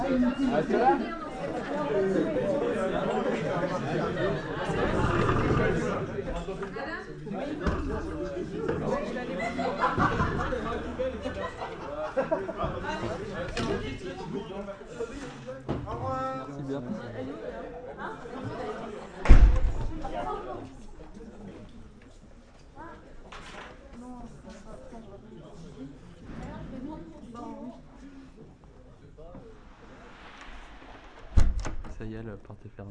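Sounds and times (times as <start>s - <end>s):
students chattering in a classroom: 0.0s - 15.7s, 16.5s - 30.2s
speech: 0.2s - 15.1s, 32.0s - 32.8s
students laughing: 8.8s - 13.4s
thump: 19.2s - 20.0s, 30.3s - 32.1s.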